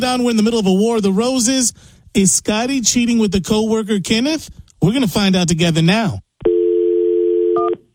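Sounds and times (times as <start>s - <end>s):
speech: 0.0s - 6.2s
steady telephone dial tone: 6.4s - 7.8s.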